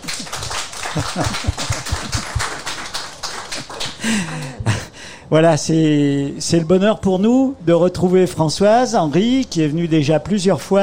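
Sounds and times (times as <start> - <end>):
crowd clapping: 0.0 - 4.7
laughter: 0.1 - 2.7, 3.5 - 4.9
speech: 1.0 - 2.3, 3.6 - 10.8.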